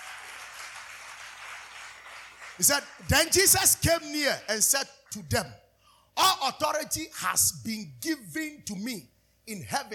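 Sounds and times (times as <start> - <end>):
audience clapping: 0.0 - 5.2
speech: 2.6 - 5.6, 6.2 - 9.9.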